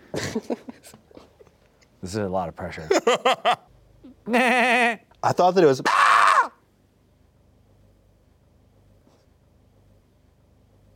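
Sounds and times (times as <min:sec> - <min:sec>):
speech: 0:00.2 - 0:01.1, 0:02.0 - 0:06.0
person imitating a screaming goat: 0:04.3 - 0:05.0, 0:05.8 - 0:06.6.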